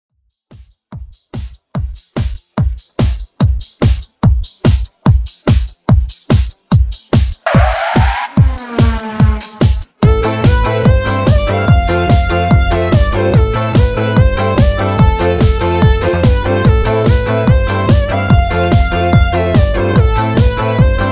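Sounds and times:
drum beat at 145 BPM: 0.3 - 21.1.

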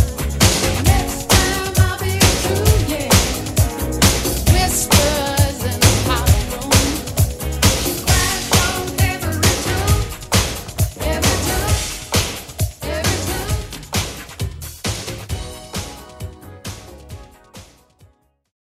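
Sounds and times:
80s pop drum beat on Redrum at 133 BPM: 0.0 - 17.8.

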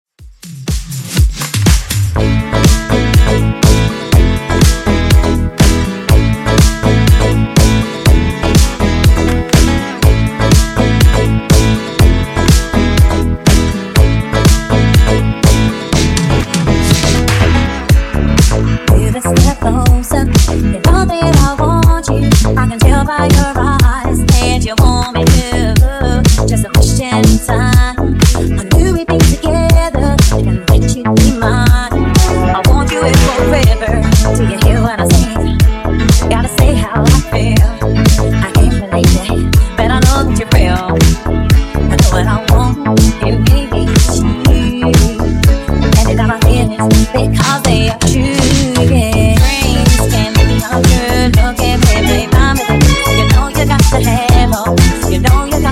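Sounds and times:
funk music at 122 BPM: 0.4 - 55.7.

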